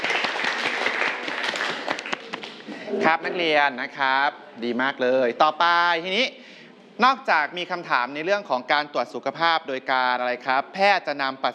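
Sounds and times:
classroom students clapping for group 3: 0.0s - 2.7s
speech: 3.0s - 6.4s, 7.0s - 11.5s.

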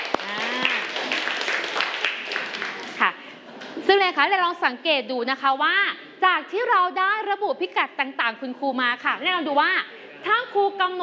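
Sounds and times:
classroom applause for a student: 0.0s - 3.8s
speech: 3.9s - 11.0s.

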